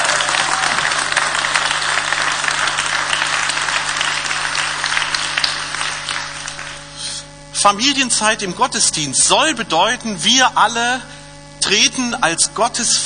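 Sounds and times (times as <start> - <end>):
audience applauding: 0.0 - 7.0
speech: 7.6 - 13.0.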